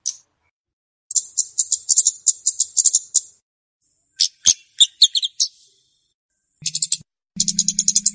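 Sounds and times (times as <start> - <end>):
flowerpecker giving rattling lure calls: 1.1 - 3.3, 4.2 - 5.8, 6.6 - 8.1.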